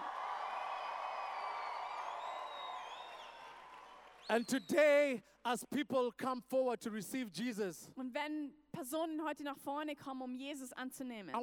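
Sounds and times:
large crowd applauding and cheering: 0.0 - 5.0
high whoops and whistles: 1.2 - 4.3
speech: 4.3 - 11.4.

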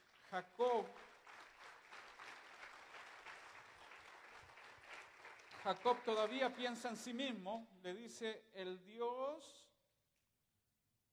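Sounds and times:
audience applause: 0.0 - 7.0
speech: 0.3 - 1.1, 5.6 - 9.7.

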